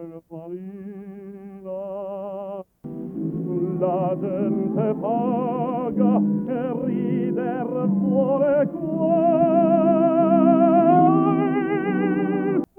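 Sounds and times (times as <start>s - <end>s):
vocoded sound: 2.9s - 12.7s.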